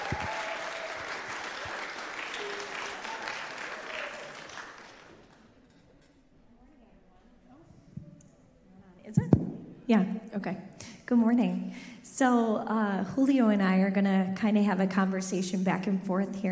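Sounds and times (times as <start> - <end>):
audience clapping: 0.0 - 5.6
speech: 9.9 - 16.4.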